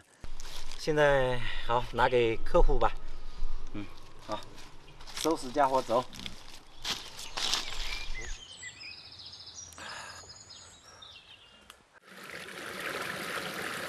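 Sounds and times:
speech: 0:00.8 - 0:03.0, 0:03.7 - 0:06.4
flowing mountain stream water: 0:12.0 - 0:13.8.

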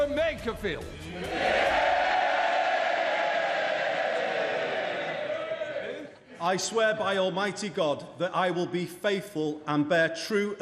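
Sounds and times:
speech: 0:00.1 - 0:01.8, 0:06.4 - 0:10.5
MPs cheering loudly in parliament chamber: 0:01.0 - 0:06.2.

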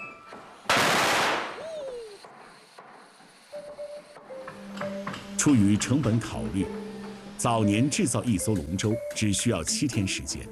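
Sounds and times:
string of firecrackers: 0:00.5 - 0:03.1
speech: 0:05.4 - 0:10.5.

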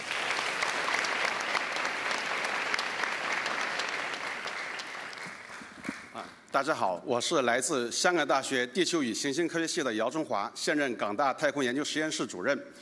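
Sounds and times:
audience applause: 0:00.0 - 0:06.2
speech: 0:06.6 - 0:12.7.

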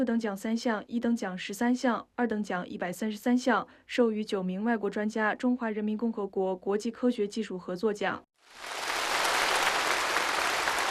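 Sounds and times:
speech: 0:00.0 - 0:08.9
warm applause at a national science and technology awards ceremony: 0:08.5 - 0:10.8.

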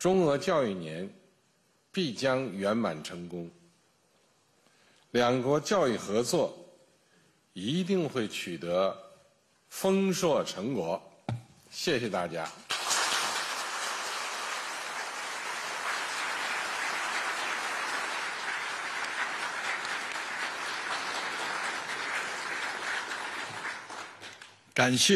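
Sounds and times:
speech: 0:00.0 - 0:01.2, 0:02.0 - 0:03.6, 0:05.1 - 0:06.6, 0:07.6 - 0:09.0, 0:09.7 - 0:12.6, 0:24.8 - 0:25.1
warm audience applause: 0:12.7 - 0:24.6.

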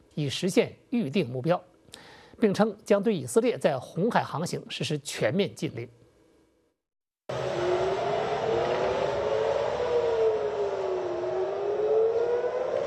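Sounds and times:
speech: 0:00.2 - 0:01.7, 0:02.4 - 0:06.0
air raid warning siren wailing: 0:07.3 - 0:12.8.

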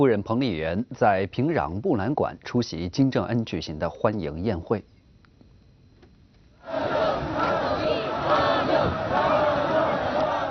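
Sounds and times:
speech: 0:00.0 - 0:04.9
crowds in national costume cheering Xi Jinping's motorcade in Pyongyang: 0:06.7 - 0:10.5.

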